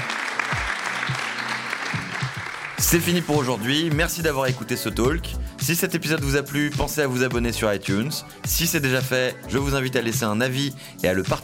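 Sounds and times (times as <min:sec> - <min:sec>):
audience applause: 0:00.0 - 0:03.0
speech: 0:02.8 - 0:11.4.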